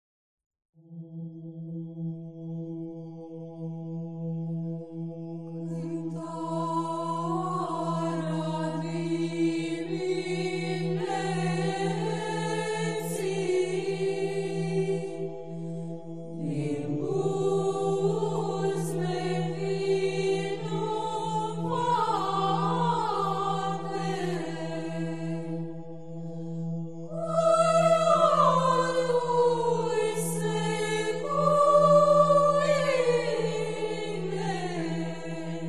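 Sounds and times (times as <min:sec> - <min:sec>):
morning liturgical chant in tone five: 0:00.8 - 0:35.6.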